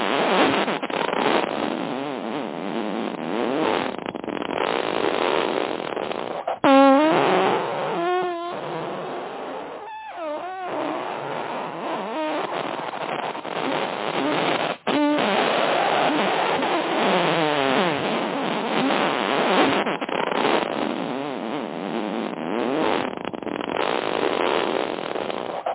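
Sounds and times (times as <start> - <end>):
fart: 0.0 - 25.7.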